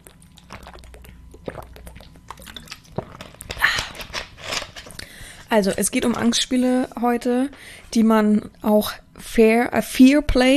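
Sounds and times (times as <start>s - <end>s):
person sipping and swallowing water: 0.0s - 4.2s
speech: 5.5s - 10.5s.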